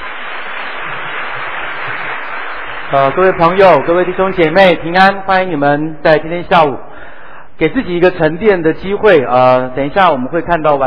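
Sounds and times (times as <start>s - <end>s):
audience applause welcoming a speaker: 0.0s - 4.8s
speech: 2.9s - 6.9s, 7.6s - 10.8s.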